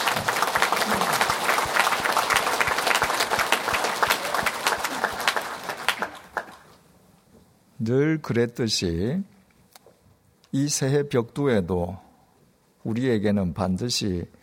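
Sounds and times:
audience applause: 0.0 - 6.8
speech: 0.2 - 0.4, 7.8 - 9.3, 10.5 - 12.1, 12.8 - 14.4.

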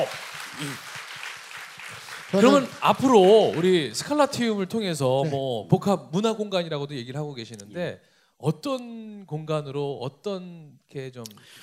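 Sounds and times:
speech: 0.0 - 0.9, 2.3 - 11.6
audience applause: 0.0 - 4.0.

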